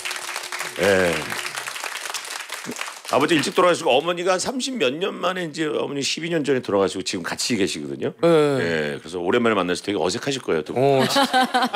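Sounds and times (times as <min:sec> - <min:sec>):
applause: 0:00.0 - 0:04.2
speech: 0:00.8 - 0:01.4, 0:02.6 - 0:11.7
laughter: 0:11.0 - 0:11.7.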